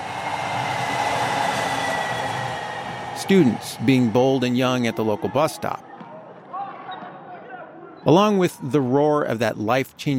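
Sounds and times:
light rail train speeding along University Avenue: 0:00.0 - 0:03.9
speech: 0:03.2 - 0:05.9, 0:08.1 - 0:10.1.

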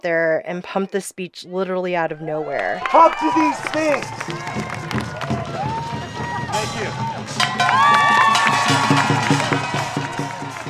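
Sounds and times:
speech: 0:00.0 - 0:05.8, 0:06.6 - 0:08.3
rally crowd cheering: 0:02.2 - 0:10.6
high whoops and shouts: 0:02.7 - 0:06.7, 0:07.4 - 0:10.6
rapid clapping: 0:02.8 - 0:06.1, 0:07.2 - 0:10.6.

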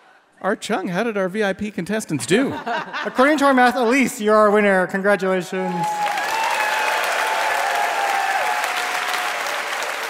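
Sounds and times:
speech: 0:00.4 - 0:06.0
laughter: 0:02.2 - 0:03.6
quiz show audience applause for VIP contestants: 0:05.7 - 0:10.0.

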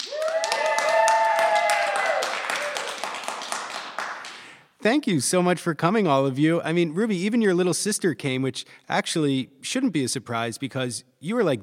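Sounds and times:
small family group cheering with high whoops and shouts: 0:00.0 - 0:03.4
small family group clapping: 0:00.0 - 0:04.7
speech: 0:04.9 - 0:11.6.

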